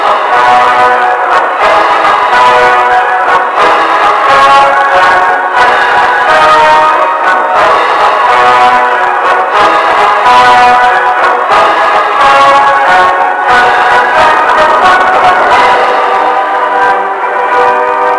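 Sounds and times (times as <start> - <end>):
sirens: 0.0 - 18.1.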